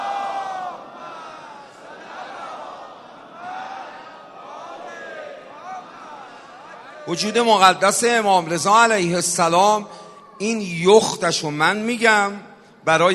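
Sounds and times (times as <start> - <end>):
large crowd loudly chanting salawat religious blessing in unison: 0.0 - 7.2
speech: 7.1 - 13.1.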